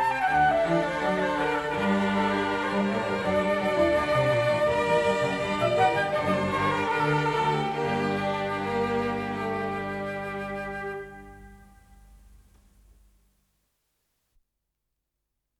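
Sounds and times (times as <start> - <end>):
flute and orchestra concerto: 0.0 - 12.1.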